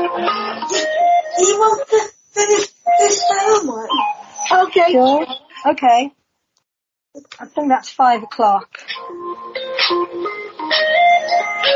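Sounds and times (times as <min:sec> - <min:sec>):
phone ringtone: 0:00.0 - 0:04.6, 0:09.0 - 0:11.7
speech: 0:04.9 - 0:06.2, 0:07.2 - 0:09.2.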